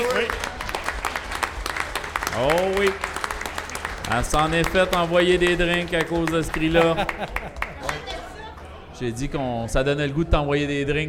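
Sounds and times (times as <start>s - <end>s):
applause: 0.0s - 8.7s
speech: 4.1s - 7.6s, 9.0s - 11.0s
laughter: 6.2s - 8.4s.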